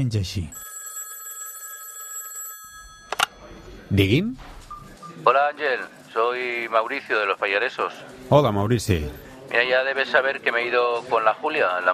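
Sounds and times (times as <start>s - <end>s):
speech: 0.0s - 0.7s, 3.9s - 4.5s, 5.2s - 11.9s
telephone ringing with a high electronic trill: 0.5s - 5.3s.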